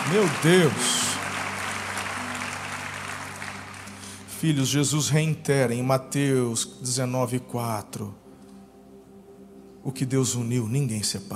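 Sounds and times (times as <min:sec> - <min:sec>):
audience applause: 0:00.0 - 0:04.2
speech: 0:00.1 - 0:01.0, 0:04.4 - 0:08.2, 0:09.8 - 0:11.3.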